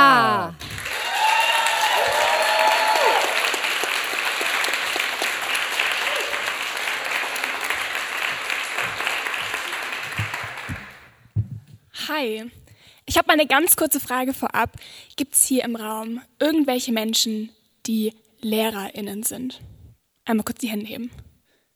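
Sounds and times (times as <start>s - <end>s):
audience applause: 0.6s - 11.2s
speech: 12.2s - 21.2s.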